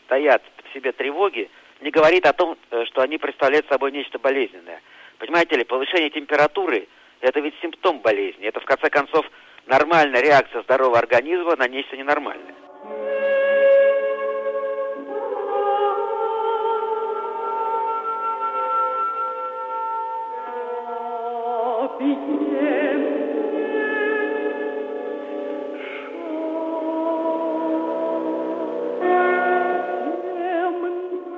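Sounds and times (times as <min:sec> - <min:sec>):
speech: 0:00.1 - 0:13.1
excerpt of a cantata: 0:12.0 - 0:31.3.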